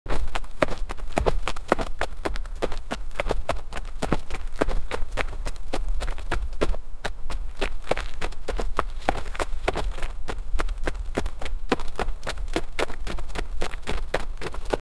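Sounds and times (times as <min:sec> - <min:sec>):
running footsteps in athletics: 0:00.1 - 0:14.8.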